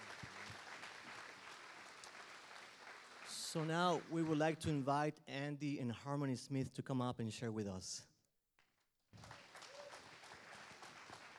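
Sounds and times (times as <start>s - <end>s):
audience round of applause: 0.0s - 4.6s, 9.2s - 11.3s
speech: 3.5s - 8.1s.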